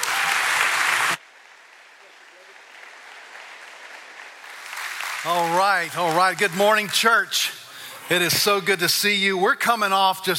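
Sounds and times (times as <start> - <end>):
audience applause welcoming a speaker at a church: 0.0 - 7.3
speech: 5.2 - 10.3.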